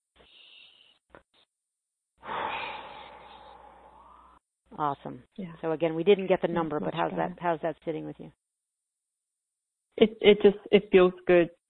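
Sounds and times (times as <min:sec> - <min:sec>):
deep breath during a guided emotional healing session: 0:00.2 - 0:01.0, 0:02.2 - 0:04.4
speech: 0:04.8 - 0:08.4, 0:10.0 - 0:11.6.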